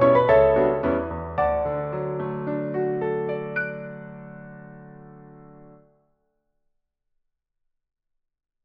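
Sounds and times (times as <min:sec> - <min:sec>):
piano duet: 0:00.0 - 0:05.9.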